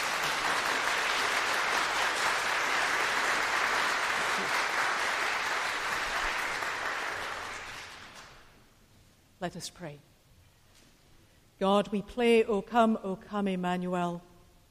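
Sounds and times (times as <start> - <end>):
audience clapping and applauding: 0.0 - 8.5
speech: 9.4 - 10.1, 11.6 - 14.3.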